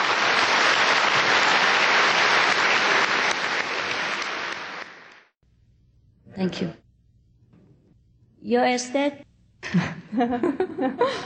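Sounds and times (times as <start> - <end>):
audience applause welcoming a performer at an event in Hungary: 0.0 - 5.4
speech: 6.4 - 6.8, 8.4 - 11.2
laughter: 9.6 - 11.2.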